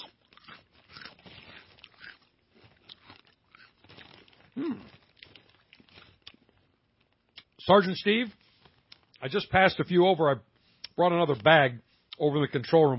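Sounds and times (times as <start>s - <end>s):
chewing crunchy lager- and cheese-flavoured snack: 0.0s - 7.6s
speech: 4.6s - 4.9s, 7.7s - 8.4s, 9.2s - 12.9s.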